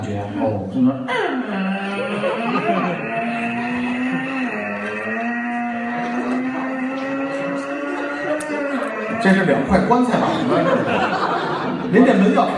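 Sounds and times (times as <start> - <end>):
speech: 0.1 - 2.9, 9.2 - 11.3, 11.9 - 12.5
voice imitating a heavy door creaking open: 1.1 - 10.1
laughter: 1.1 - 12.5.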